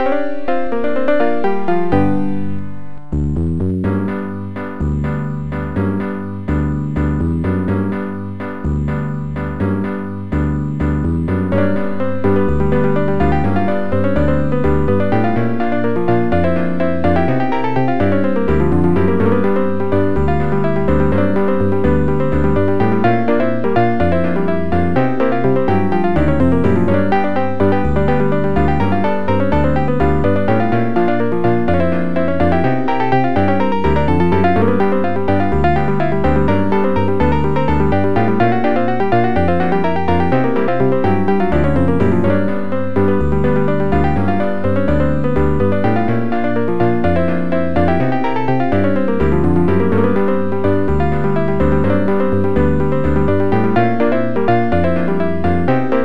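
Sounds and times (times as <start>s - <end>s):
piano plinking: 0.0s - 56.0s.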